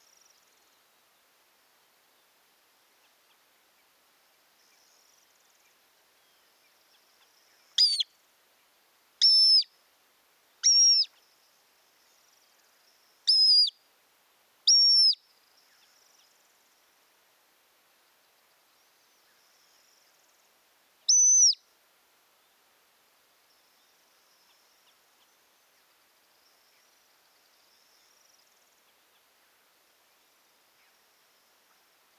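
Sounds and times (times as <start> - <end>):
Montagu's harrier high squealing whistles: 7.8 - 8.0, 9.2 - 9.7, 10.6 - 11.1, 13.3 - 13.7, 14.7 - 15.2, 21.1 - 21.6.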